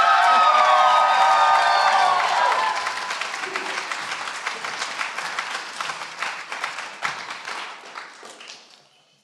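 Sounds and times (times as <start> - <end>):
conference audience cheering and whooping welcoming a pastor: 0.0 - 3.9
conference audience applause welcoming a pastor: 0.0 - 8.9.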